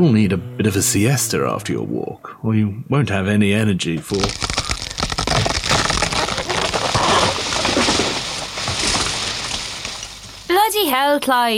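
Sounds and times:
speech: 0.0 - 4.5, 10.9 - 11.5
snapping wood: 4.0 - 10.5
tree being knocked down: 4.0 - 10.7
branches rustling: 4.0 - 11.2.

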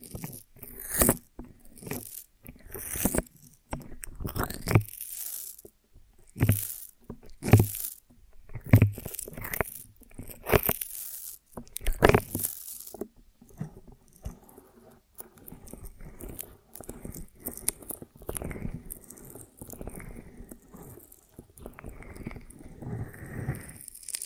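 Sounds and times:
eating honeycomb on a branch with crunchy bites and wet chewing: 0.0 - 13.1, 15.2 - 24.2.

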